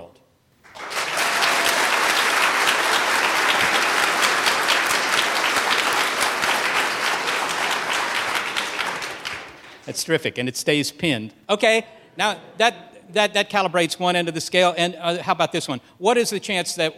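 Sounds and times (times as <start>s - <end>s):
audience applause: 0.6s - 10.0s
speech: 10.0s - 16.9s.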